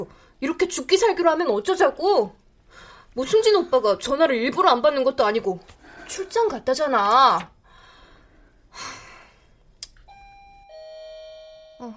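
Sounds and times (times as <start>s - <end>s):
speech: 0.0s - 7.5s
doorbell two-note ding-dong chime: 10.1s - 11.9s.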